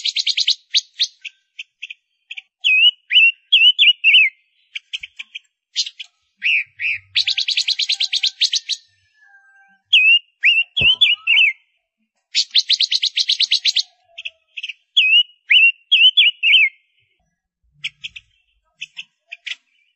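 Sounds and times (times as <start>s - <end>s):
Gouldian finch singing: 0.0s - 19.9s.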